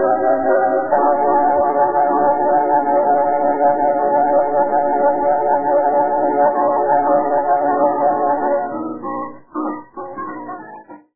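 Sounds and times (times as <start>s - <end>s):
slow piano piece: 0.0s - 11.1s.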